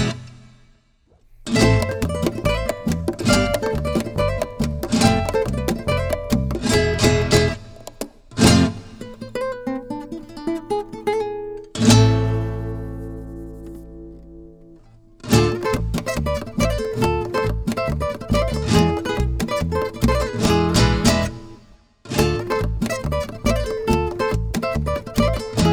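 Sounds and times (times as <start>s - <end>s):
flamenco percussion: 1.3s - 25.7s.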